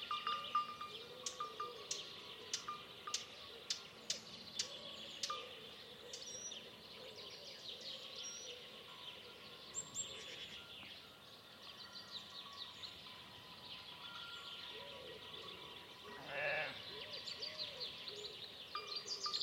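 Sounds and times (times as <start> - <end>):
dawn biophony: 0.0 - 19.4.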